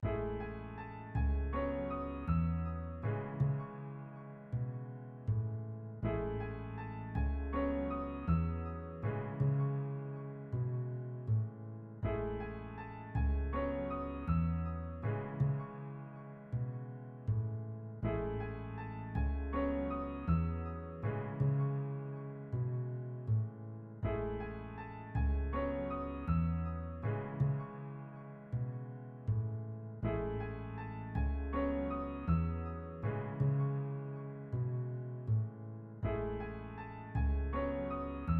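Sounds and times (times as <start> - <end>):
piano song: 0.0 - 38.3.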